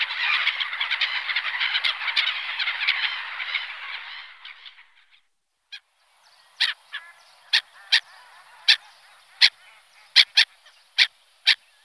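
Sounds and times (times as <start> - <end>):
black-headed gull harsh squawking calls: 0.0 - 5.2, 6.6 - 10.5
faint chattering calls: 0.0 - 11.8.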